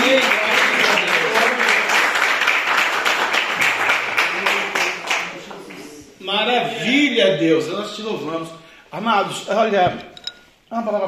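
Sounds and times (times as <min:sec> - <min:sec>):
audience applause: 0:00.0 - 0:05.6
speech: 0:07.3 - 0:10.1, 0:10.7 - 0:11.0.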